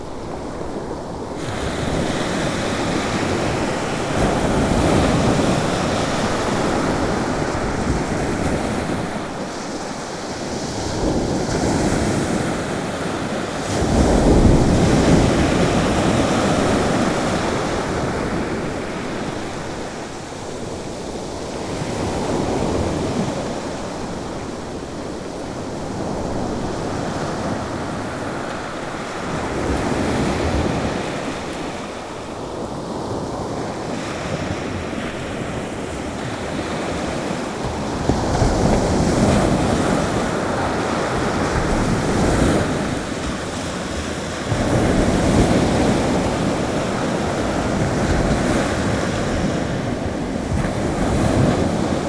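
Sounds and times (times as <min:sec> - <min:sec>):
sea: 0:00.0 - 0:52.0.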